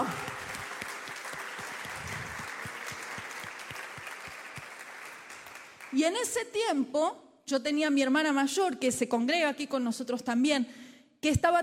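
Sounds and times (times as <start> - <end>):
audience applause: 0.0 - 6.0
speech: 5.9 - 11.6.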